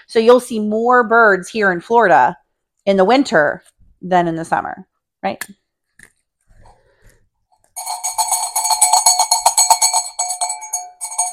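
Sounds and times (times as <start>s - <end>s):
speech: 0.0s - 5.6s
small bell ringing: 7.8s - 11.3s.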